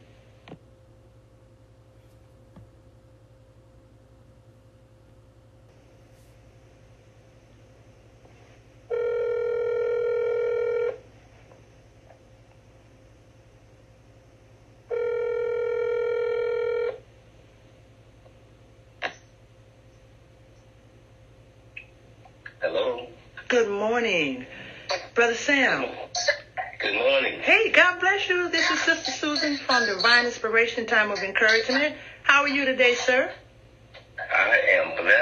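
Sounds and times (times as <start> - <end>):
low hum: 0.0 - 35.2
buzzy telephone-line tones: 8.9 - 11.0, 14.9 - 17.0
speech: 22.7 - 24.5, 25.2 - 26.0, 26.9 - 33.4.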